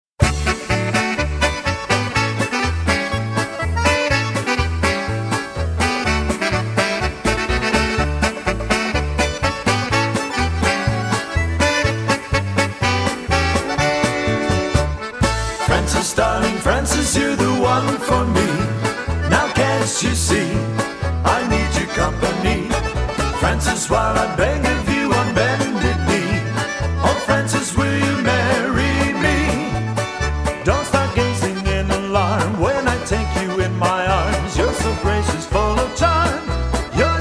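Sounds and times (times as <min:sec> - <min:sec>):
polka music: 0:00.2 - 0:37.1.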